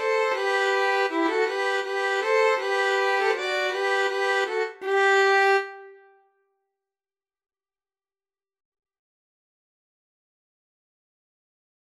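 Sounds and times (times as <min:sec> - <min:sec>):
two violins in a slavonic trio: 0:00.0 - 0:06.0
cello in a slavonic trio: 0:00.0 - 0:06.1.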